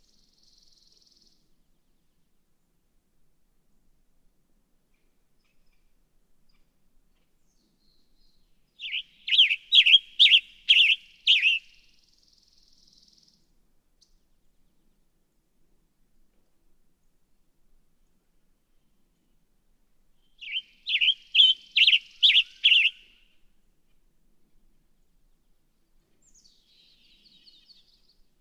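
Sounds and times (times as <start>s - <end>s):
Western Tanager: 8.8s - 11.8s, 20.4s - 23.2s.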